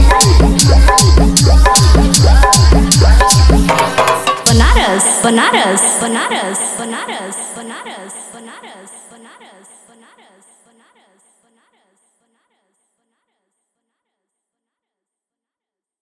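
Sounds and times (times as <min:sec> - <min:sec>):
Bhojpuri DJ remix song: 0:00.0 - 0:09.1.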